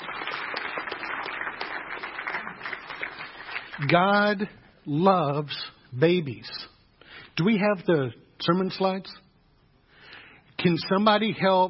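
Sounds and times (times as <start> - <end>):
church congregation applauding to welcome a family: 0.0 - 4.4
speech: 3.8 - 6.6, 7.4 - 9.2, 10.6 - 11.6.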